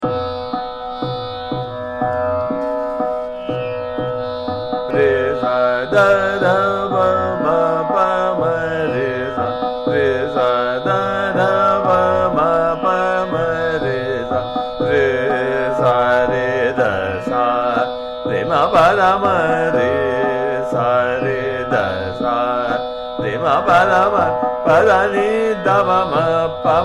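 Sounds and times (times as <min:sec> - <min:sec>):
sargam singing in Jhaptal rhythm in raga Jogiya: 0:00.0 - 0:26.8.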